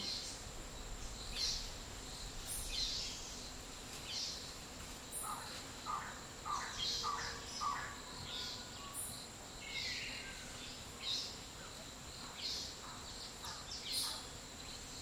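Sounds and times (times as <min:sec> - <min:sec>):
high insect whine in a Costa Rican dry forest: 0:00.0 - 0:15.0.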